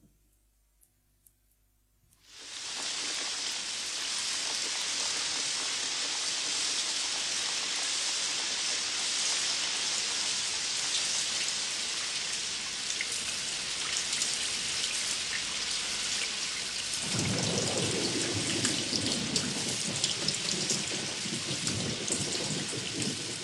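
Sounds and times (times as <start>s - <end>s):
heavy rain: 2.3s - 23.4s.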